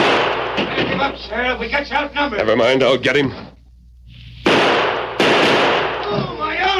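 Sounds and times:
rifle gunshots: 0.0 - 1.3, 4.4 - 6.7
speech: 0.6 - 3.6.

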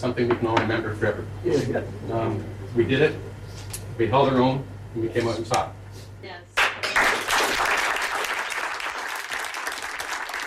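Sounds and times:
speech: 0.0 - 3.3, 4.0 - 6.5
audience applause in a standing ovation: 6.6 - 10.4.

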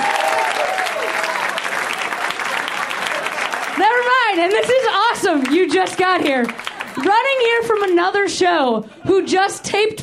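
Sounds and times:
faint cheers: 0.0 - 2.4
crowd applauding for a comedian: 0.0 - 8.0
speech: 4.4 - 10.0.

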